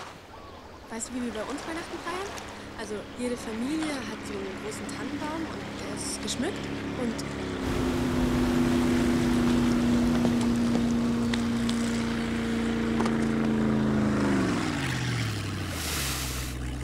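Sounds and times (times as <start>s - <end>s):
speech: 0.9s - 8.0s
motorboat engine on water: 0.9s - 16.8s.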